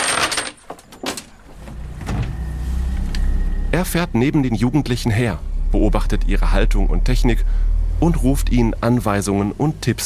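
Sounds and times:
motorboat engine starting on a lake: 0:01.4 - 0:09.8
speech: 0:03.8 - 0:10.0.

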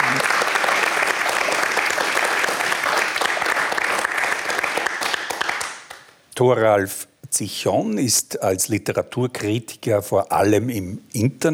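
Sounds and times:
audience applause: 0:00.0 - 0:06.1
speech: 0:06.4 - 0:11.5.

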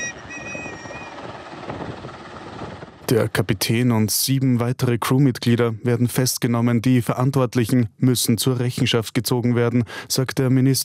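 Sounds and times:
helicopter: 0:00.0 - 0:03.1
speech: 0:03.1 - 0:10.8.

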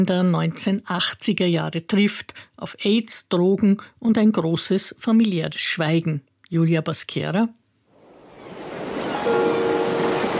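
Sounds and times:
speech: 0:00.0 - 0:07.6
roaring sea: 0:08.0 - 0:10.3.

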